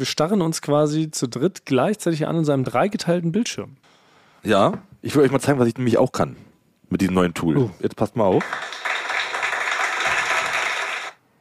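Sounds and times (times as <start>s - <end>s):
speech: 0.0s - 8.8s
crowd applause sound effect: 8.4s - 11.2s.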